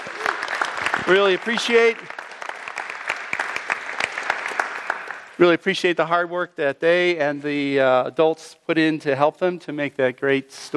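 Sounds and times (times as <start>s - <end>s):
audience applause: 0.0s - 5.4s
speech: 1.0s - 2.1s, 5.4s - 10.7s.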